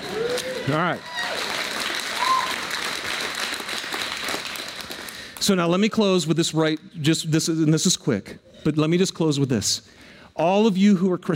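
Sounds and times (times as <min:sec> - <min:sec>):
crowd applauding: 0:00.0 - 0:05.4
speech: 0:00.7 - 0:01.2, 0:05.4 - 0:11.3.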